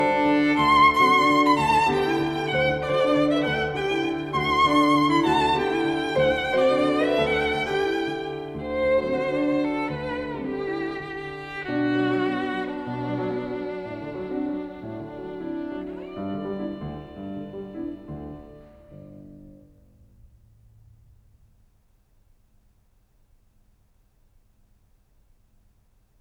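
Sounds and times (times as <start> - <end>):
violin: 0.0 - 19.9
piano: 0.0 - 25.5.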